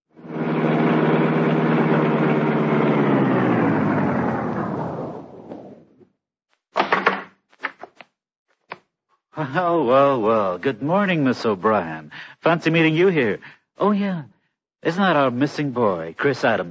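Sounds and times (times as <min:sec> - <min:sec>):
car engine rumbling: 0:00.1 - 0:06.0
speech: 0:09.5 - 0:16.7.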